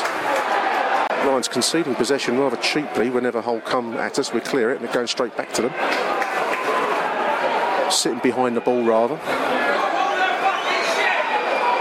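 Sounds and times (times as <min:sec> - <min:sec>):
football crowd reacting: 0:00.0 - 0:11.7
speech: 0:01.3 - 0:06.3, 0:07.9 - 0:09.6.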